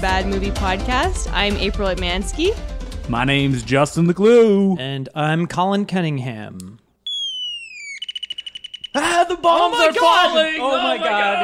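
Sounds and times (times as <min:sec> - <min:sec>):
speech: 0:00.0 - 0:06.8, 0:09.0 - 0:11.4
antique Christmas ornament electronic bird call: 0:07.0 - 0:09.2.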